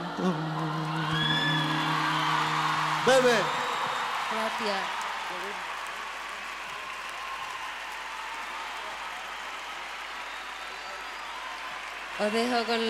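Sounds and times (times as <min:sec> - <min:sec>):
audience applause for a singer: 0:00.0 - 0:12.8
speech: 0:03.1 - 0:03.6, 0:04.5 - 0:05.7, 0:12.2 - 0:12.8.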